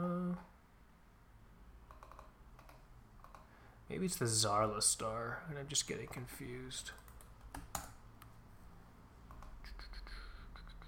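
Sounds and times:
low hum: 0.0 - 10.8
typing on a computer keyboard: 1.9 - 3.5, 6.8 - 8.0
speech: 3.9 - 7.1.

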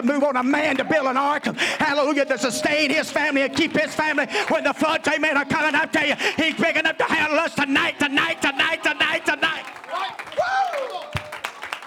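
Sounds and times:
speech: 0.0 - 9.4
laughter: 0.0 - 11.0
audience clapping hands in a steady rhythm: 0.0 - 11.8
person whooping over the crowd: 1.7 - 4.6, 10.4 - 11.4.

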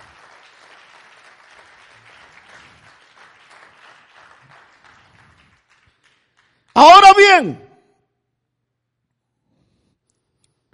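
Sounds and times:
audience applause: 0.0 - 6.6
speech: 6.8 - 7.6.

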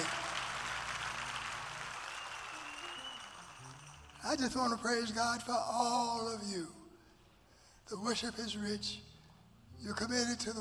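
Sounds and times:
audience applause: 0.0 - 4.3
speech: 4.3 - 6.8, 7.9 - 9.1, 9.8 - 10.6.

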